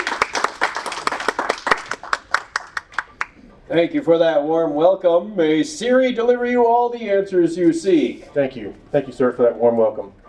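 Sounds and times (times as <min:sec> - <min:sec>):
live audience applause welcoming a comedy act on stage: 0:00.0 - 0:03.4
speech: 0:03.7 - 0:10.2.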